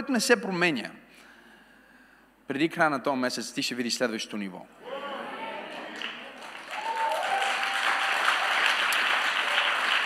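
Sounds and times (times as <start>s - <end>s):
speech: 0.0s - 1.3s, 2.5s - 5.1s
people clapping with accelerating rhythm: 5.7s - 10.0s.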